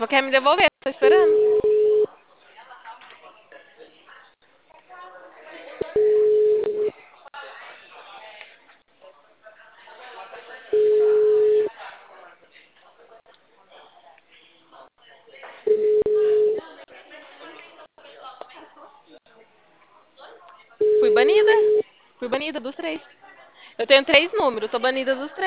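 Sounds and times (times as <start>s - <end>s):
speech: 0.0s - 1.8s, 23.9s - 25.4s
telephone ringback tone on a call: 1.1s - 2.1s, 6.0s - 6.9s, 10.8s - 11.7s, 15.7s - 16.6s, 20.8s - 21.8s.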